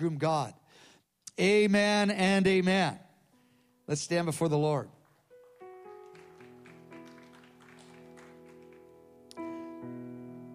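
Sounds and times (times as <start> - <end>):
speech: 0.0 - 3.1, 3.9 - 5.0
audience applauding: 5.0 - 9.7.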